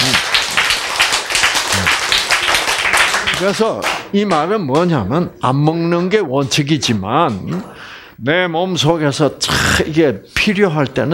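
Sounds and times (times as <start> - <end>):
clapping: 0.0 - 4.9
speech: 3.4 - 11.1.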